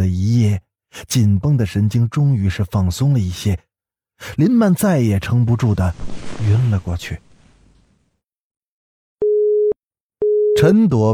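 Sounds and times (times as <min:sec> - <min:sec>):
speech: 0:01.0 - 0:07.3, 0:10.6 - 0:11.1
telephone busy signal: 0:09.2 - 0:10.6.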